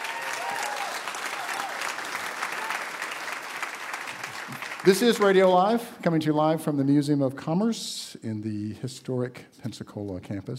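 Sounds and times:
live radio show audience applause at the Museum of Commerce in Pensacola: 0.0s - 5.8s
speech: 4.5s - 10.5s.

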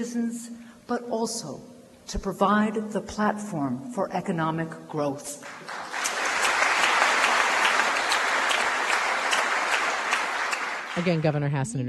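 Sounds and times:
speech: 0.0s - 5.8s, 11.0s - 11.8s
audience applause after a speech: 5.4s - 11.5s.

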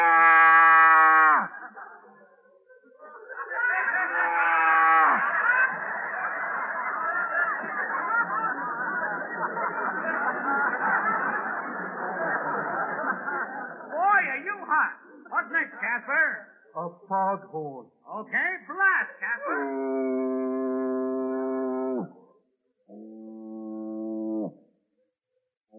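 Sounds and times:
laughter: 0.2s - 16.1s, 19.1s - 22.1s
Holstein cow mooing sound effect: 23.0s - 24.6s.

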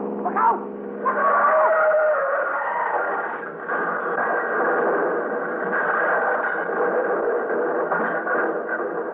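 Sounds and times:
tires squealing: 1.0s - 4.2s
two cars crashing: 1.0s - 9.1s.

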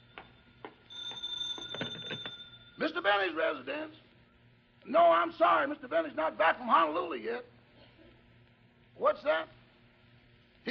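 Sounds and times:
telephone bell ringing in a house: 0.9s - 3.0s
speech: 3.0s - 4.0s, 4.8s - 7.5s, 9.0s - 9.6s.

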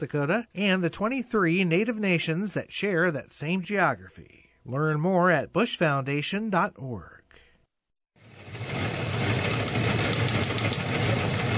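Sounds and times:
speech: 0.0s - 7.2s
old news wire machine clattering: 8.6s - 11.5s.

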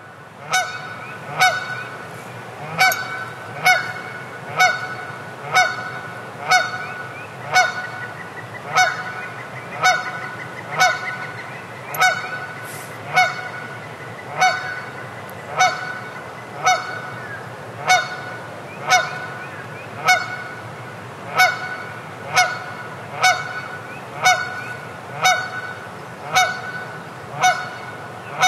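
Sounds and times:
waking waterfowl at sunrise by Lee Creek in Devil's Den: 0.4s - 28.4s.

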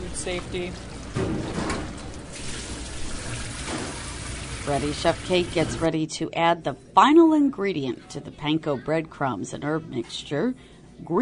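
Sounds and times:
speech: 0.2s - 1.6s, 4.7s - 11.1s
running water trickling and splashing while tomatoes are washed: 0.2s - 5.8s.

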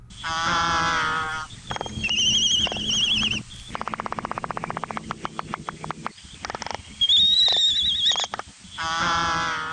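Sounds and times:
Laysan albatross calls: 0.2s - 9.7s.

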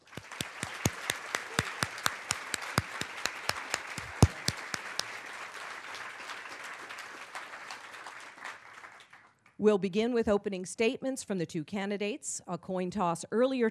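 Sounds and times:
audience applause welcoming two candidates at a political debate: 0.0s - 9.3s
speech: 9.6s - 13.7s.

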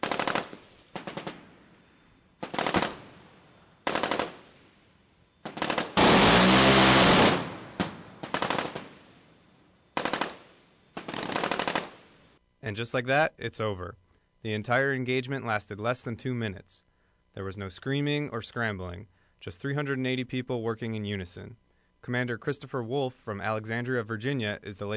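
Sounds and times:
shipboard rotary cannon firing bursts: 0.0s - 12.4s
speech: 12.7s - 24.9s.

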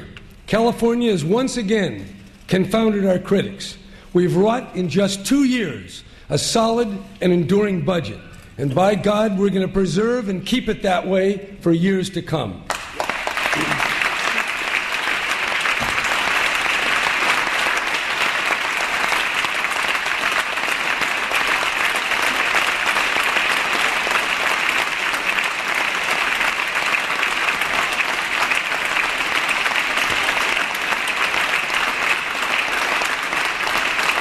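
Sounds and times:
speech: 0.5s - 12.7s
audience applause after speech: 12.7s - 34.1s.

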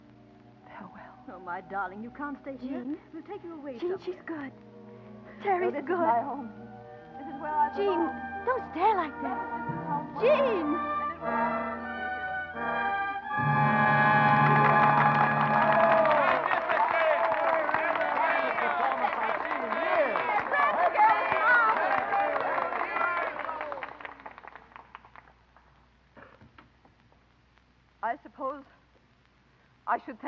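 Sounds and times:
speech: 1.3s - 4.7s, 5.4s - 6.6s, 7.4s - 11.8s, 12.6s - 13.8s, 29.9s - 30.2s
sustained chord: 4.7s - 16.4s
crowd cheering and voices: 13.4s - 23.9s
theatre audience applause: 13.4s - 25.7s.

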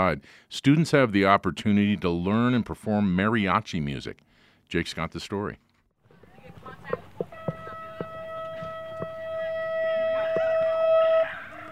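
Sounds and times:
speech: 0.0s - 5.6s
school bell ringing at Chavez Huerta Preparatory Academy: 7.0s - 11.6s.

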